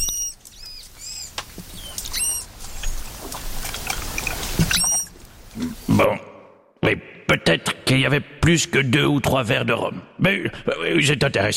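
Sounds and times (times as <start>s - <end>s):
manatee calls: 0.0s - 3.2s, 3.8s - 5.9s
speech: 7.3s - 11.5s.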